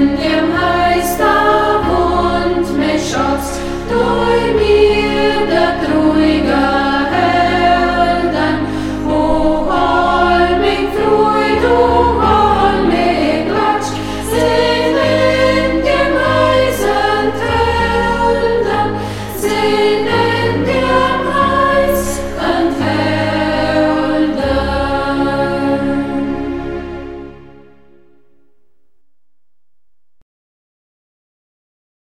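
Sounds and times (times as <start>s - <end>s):
choir singing in Burgberg local dialect: 0.0s - 28.0s.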